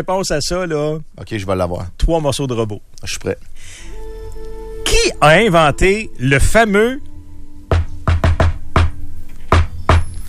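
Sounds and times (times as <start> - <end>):
speech: 0.0 - 4.0, 5.0 - 7.1
rhythmic knocking on a door: 7.7 - 10.0.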